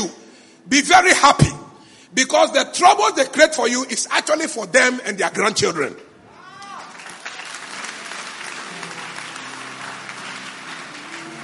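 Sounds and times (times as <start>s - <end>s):
speech: 0.0s - 6.0s
audience clapping during a church sermon: 6.6s - 11.4s.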